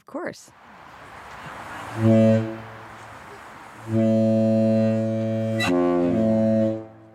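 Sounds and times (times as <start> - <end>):
ship's horn blasts: 0.7 - 7.1.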